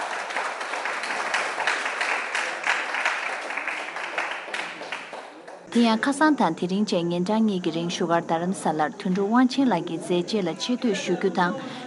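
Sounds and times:
crowd applause for a film festival award winner: 0.0 - 5.7
speech: 5.8 - 11.8.

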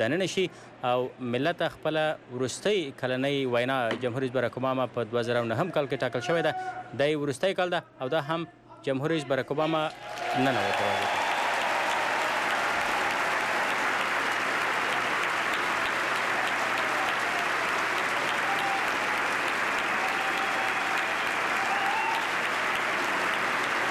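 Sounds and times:
speech: 0.0 - 11.2
lawmakers in Congress applauding: 9.9 - 23.8.

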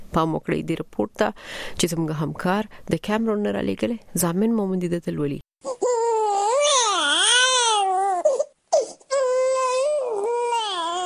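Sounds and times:
speech: 0.2 - 5.4
two-day-old newborn crying outside a private hospital in Douala, Cameroon: 5.6 - 11.0.

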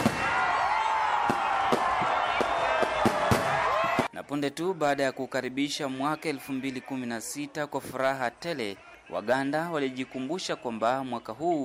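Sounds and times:
steady crowd roar: 0.0 - 4.1
fireworks bursting over Kampala at midnight on New Year: 1.2 - 4.1
speech: 4.4 - 11.6.

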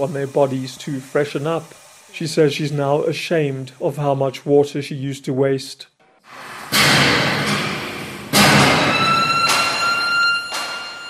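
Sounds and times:
speech: 0.0 - 7.2
heavy hammer blows on steel at a factory: 6.7 - 11.0.

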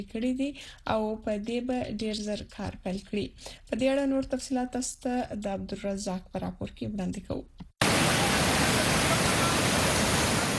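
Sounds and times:
speech: 0.0 - 7.6
natural waterfall roaring in Khyber Pakhtunkhwa near Dargai bazaar: 7.8 - 10.5.

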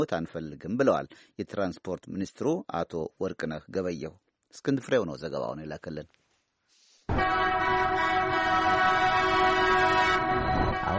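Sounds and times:
speech: 0.0 - 6.2
train horn blast in Ethiopia: 7.1 - 10.9.

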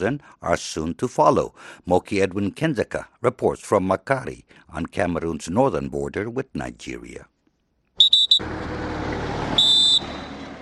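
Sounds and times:
speech: 0.0 - 7.3
Cameroon troops blowing whistles for departure: 8.0 - 8.4, 9.6 - 10.4.

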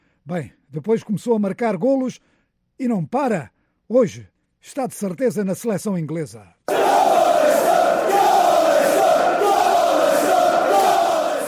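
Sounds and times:
speech: 0.3 - 6.6
football fans chanting in stadium: 6.7 - 11.4.

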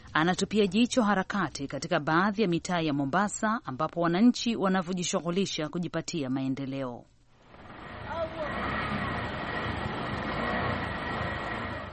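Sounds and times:
speech: 0.2 - 7.1
road traffic of cars and cargo trailer trucks on Obama Road, Mombasa: 7.4 - 11.9.

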